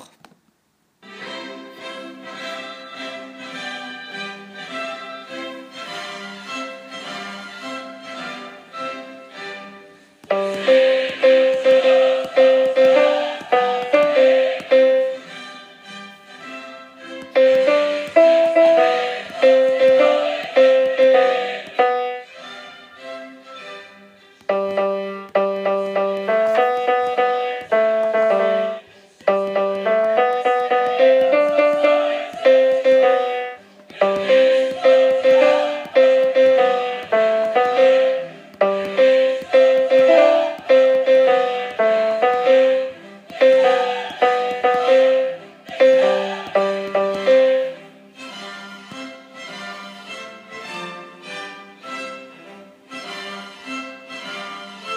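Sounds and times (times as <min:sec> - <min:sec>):
tenor singing: 0:10.3 - 0:15.3, 0:17.4 - 0:23.0, 0:24.5 - 0:47.9.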